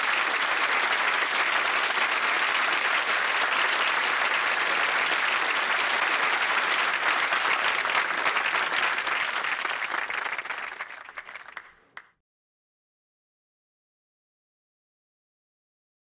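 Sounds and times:
rowdy crowd cheering indoors: 0.0 - 12.1.

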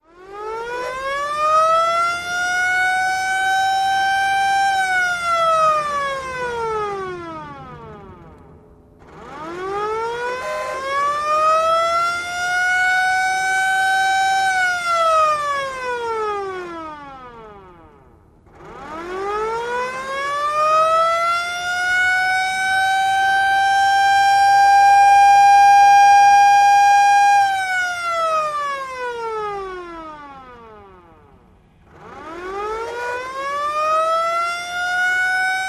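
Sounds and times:
hand-turned siren: 0.0 - 8.4, 9.0 - 35.6.

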